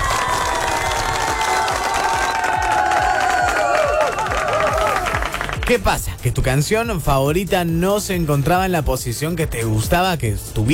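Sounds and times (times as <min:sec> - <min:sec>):
cheering: 0:00.0 - 0:05.6
applause: 0:00.0 - 0:06.0
speech: 0:05.7 - 0:10.7.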